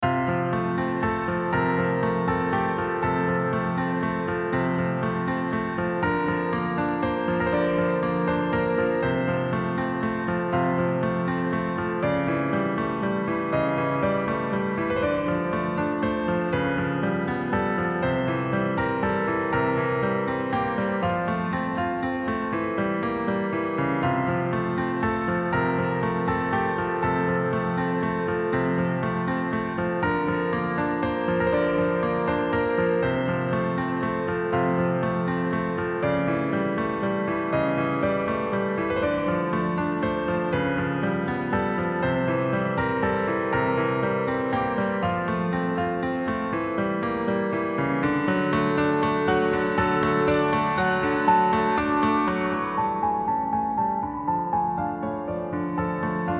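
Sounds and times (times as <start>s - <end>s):
piano music: 0.0s - 56.3s.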